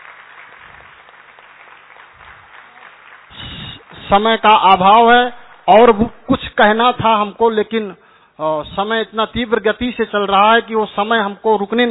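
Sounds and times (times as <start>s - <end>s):
audience applause: 0.0s - 4.7s
speech: 4.1s - 11.8s.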